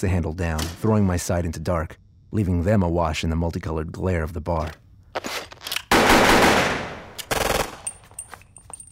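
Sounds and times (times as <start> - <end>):
speech: 0.0 - 5.4
gunfire in a dark bar: 5.9 - 7.8.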